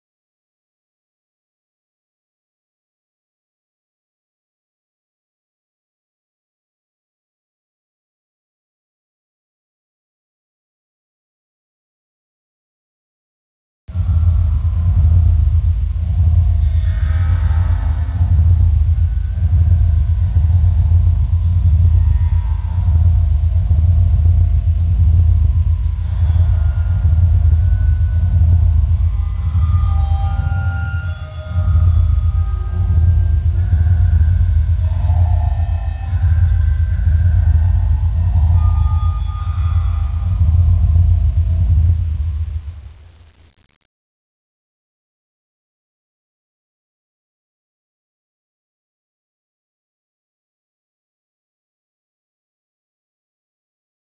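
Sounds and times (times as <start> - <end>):
industrial music: 14.0 - 43.4.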